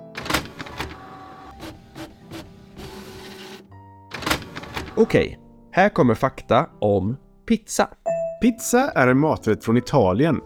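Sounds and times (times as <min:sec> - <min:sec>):
printer printing out pages: 0:00.2 - 0:05.1
speech: 0:05.0 - 0:10.4.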